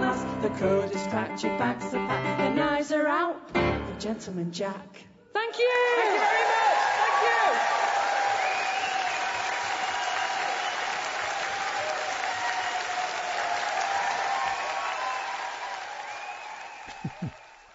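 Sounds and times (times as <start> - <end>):
speech: 0.4 - 7.8
audience applauding after a live folk song at St. George's Hall: 5.7 - 17.7.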